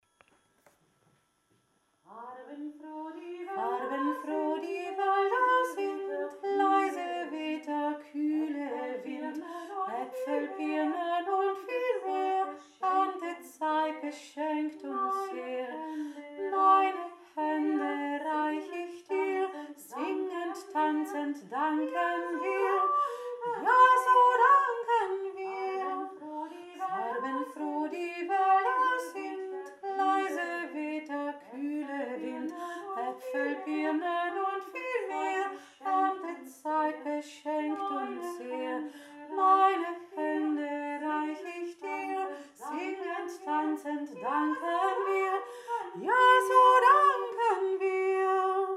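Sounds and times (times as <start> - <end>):
song sung as a canon: 2.1 - 48.7.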